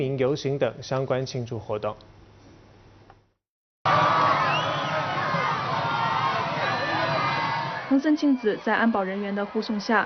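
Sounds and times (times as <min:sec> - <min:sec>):
speech: 0:00.0 - 0:02.2, 0:07.9 - 0:10.0
supporters cheering along parade route: 0:03.8 - 0:10.0.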